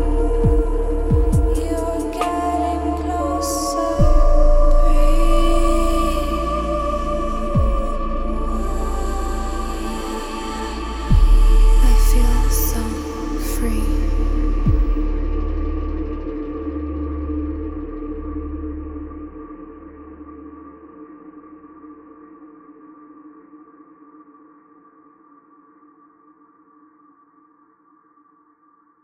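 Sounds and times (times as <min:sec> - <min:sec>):
silk vocal samples: 0:00.0 - 0:16.5.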